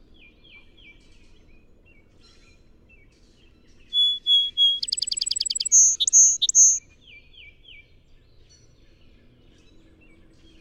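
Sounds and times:
song sparrow singing: 3.8s - 6.8s.

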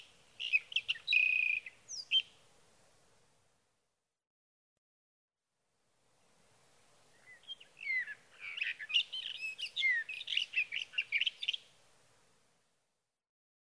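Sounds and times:
Sage Thrasher singing: 0.0s - 2.3s, 7.2s - 11.7s.

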